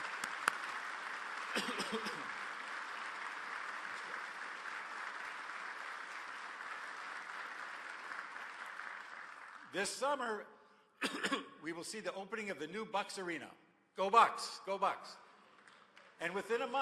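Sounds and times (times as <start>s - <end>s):
audience applause: 0.0s - 9.7s
speech: 9.7s - 15.2s, 16.2s - 16.8s.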